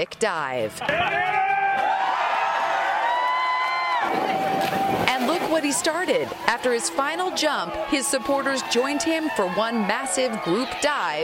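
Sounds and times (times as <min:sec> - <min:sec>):
speech: 0:00.0 - 0:02.0, 0:04.0 - 0:11.2
hundreds of onlookers cheering a winter lake plunge in Chicago: 0:00.8 - 0:11.2
whoops and shouting voices: 0:00.9 - 0:05.1, 0:06.3 - 0:11.2.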